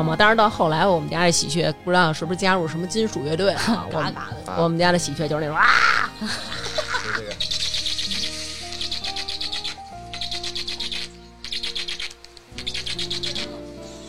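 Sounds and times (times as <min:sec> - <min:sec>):
speech: 0:00.0 - 0:06.6
laughter: 0:03.5 - 0:04.6, 0:05.6 - 0:08.6
young stork begging for food call: 0:05.4 - 0:14.0.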